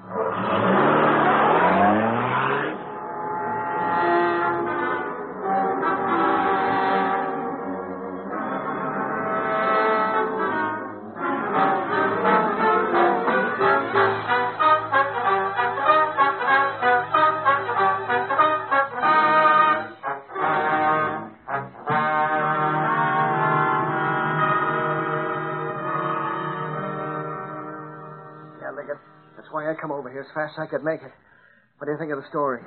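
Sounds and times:
car engine revving: 0:00.0 - 0:29.6
speech: 0:30.4 - 0:31.1, 0:31.9 - 0:32.6.

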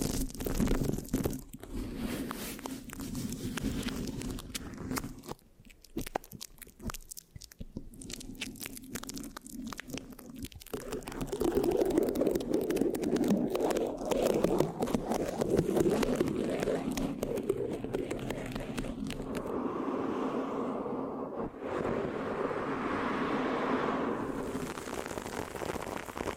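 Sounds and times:
microphone scratching: 0:00.0 - 0:05.4, 0:09.7 - 0:22.8, 0:24.1 - 0:26.3
low rumble: 0:19.2 - 0:24.9.

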